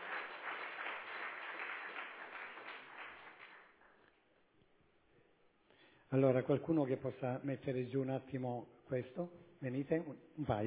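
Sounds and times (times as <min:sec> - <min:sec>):
crowd applause: 0:00.0 - 0:04.0
speech: 0:06.1 - 0:10.6.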